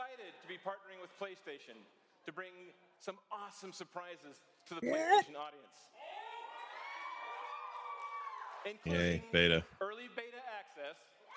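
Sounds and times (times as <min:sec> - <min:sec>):
speech: 0:00.3 - 0:06.1, 0:08.6 - 0:11.3
crowd cheering and whooping at a video game publisher's E3 conference: 0:06.0 - 0:08.7.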